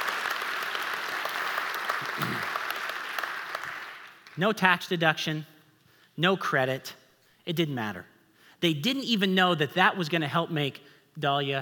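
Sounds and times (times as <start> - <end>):
audience clapping: 0.0 - 4.5
speech: 2.2 - 2.6, 4.4 - 5.5, 6.2 - 11.6.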